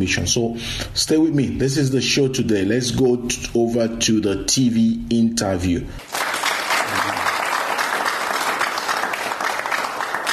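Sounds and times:
speech: 0:00.0 - 0:06.2
studio audience applauding a TV show guest: 0:06.0 - 0:10.3.

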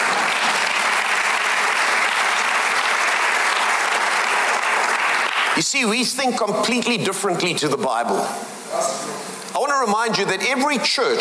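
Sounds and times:
audience clapping: 0:00.0 - 0:05.9
speech: 0:05.6 - 0:11.1.

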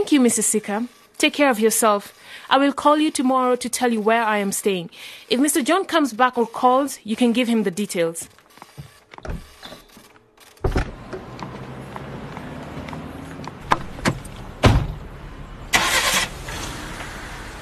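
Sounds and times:
speech: 0:00.1 - 0:09.4
car engine starting and rumbling: 0:10.6 - 0:17.6
sharp clunks: 0:13.6 - 0:15.0.

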